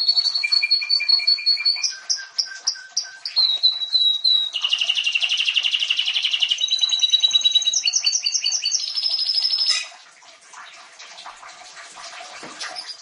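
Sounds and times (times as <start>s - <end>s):
canary singing trills: 0.0s - 10.0s.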